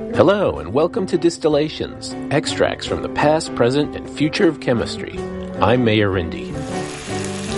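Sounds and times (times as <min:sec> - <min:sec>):
speech: 0:00.2 - 0:06.8
breakfast sizzling and frying: 0:06.4 - 0:07.5.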